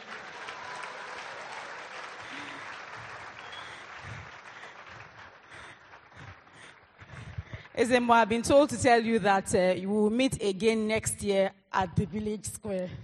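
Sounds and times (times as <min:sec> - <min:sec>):
audience applause: 0:00.0 - 0:07.7
speech: 0:07.8 - 0:13.0.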